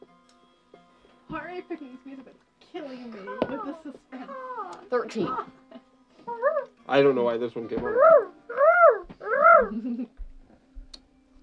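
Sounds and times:
speech: 1.3s - 5.7s, 6.3s - 8.3s, 9.6s - 10.2s
fictional Renekian bird call game sound effect: 7.9s - 9.8s.

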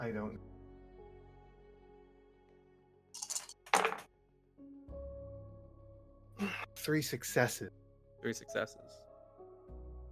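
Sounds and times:
speech: 0.0s - 0.5s, 6.9s - 9.0s
dice being rolled: 3.2s - 4.1s.

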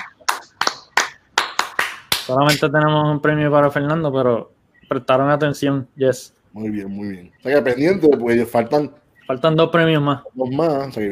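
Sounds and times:
applause: 0.0s - 2.3s
speech: 2.3s - 11.1s.

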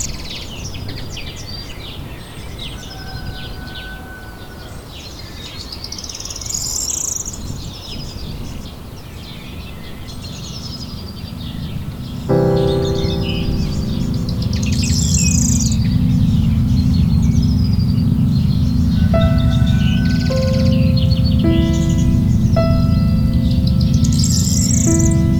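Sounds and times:
birds chirping and twittering: 9.5s - 25.3s
held piano notes and chords: 9.9s - 25.3s
steady low rumble of outdoor noise: 10.1s - 25.3s.

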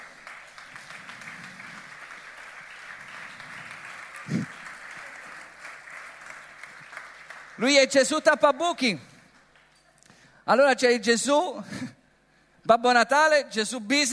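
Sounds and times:
audience applause: 0.0s - 7.7s
speech: 7.6s - 9.1s, 10.5s - 11.9s, 12.7s - 14.1s.

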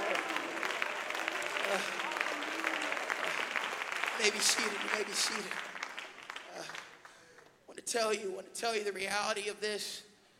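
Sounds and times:
crowd clapping hands: 0.0s - 7.6s
speech: 4.2s - 5.8s, 7.9s - 10.1s.

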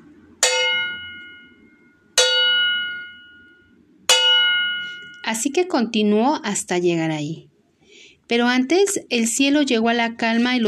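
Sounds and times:
distant village bells ringing: 0.4s - 5.4s
speech: 5.3s - 7.5s, 8.3s - 10.6s.

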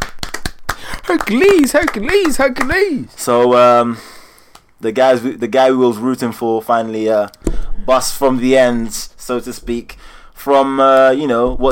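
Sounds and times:
round of applause: 0.0s - 3.0s
speech: 1.1s - 4.1s, 4.8s - 11.7s.

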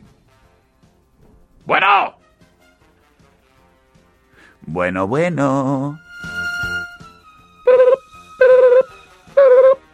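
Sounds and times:
speech: 1.7s - 2.2s, 4.7s - 6.0s
electronic telephone call tones on air: 7.7s - 9.8s.

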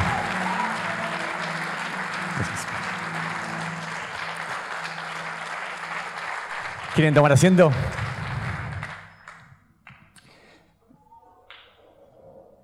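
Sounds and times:
low sustained musical tones: 0.0s - 7.0s
audience applause: 0.0s - 9.6s
speech: 2.4s - 2.7s, 7.0s - 8.0s.

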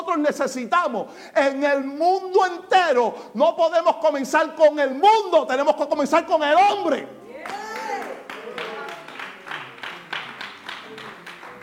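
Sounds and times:
speech: 0.2s - 7.6s
scattered clapping from a small audience of women: 7.4s - 11.6s.

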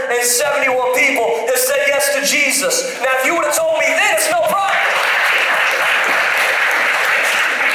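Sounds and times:
speech: 0.2s - 4.8s
audience applause: 4.6s - 7.7s.

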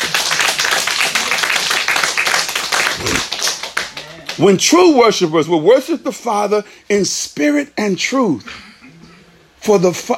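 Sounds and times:
crowd clapping: 0.0s - 4.6s
speech: 4.4s - 8.6s, 9.6s - 10.1s.

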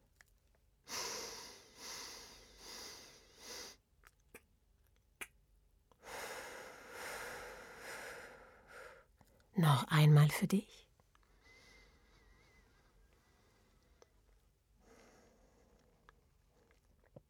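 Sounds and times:
slow quiet breathing during a guided breathing exercise: 0.9s - 3.8s, 6.0s - 9.5s, 11.2s - 16.8s
speech: 9.6s - 10.9s.

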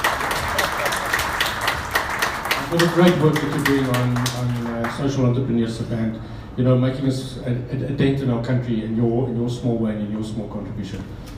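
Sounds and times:
audience applause: 0.0s - 5.0s
speech: 2.7s - 11.3s.

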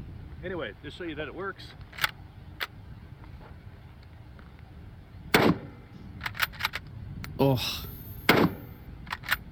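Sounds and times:
speech: 0.4s - 2.0s, 7.4s - 7.9s
century-old rifle firing in a video game: 5.3s - 5.8s, 8.2s - 8.7s.

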